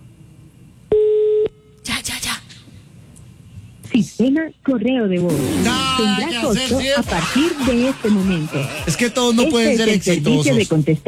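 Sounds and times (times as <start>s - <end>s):
ringback tone of an outgoing telephone call: 0.9s - 1.5s
speech: 4.0s - 11.0s
laughter: 5.6s - 10.7s.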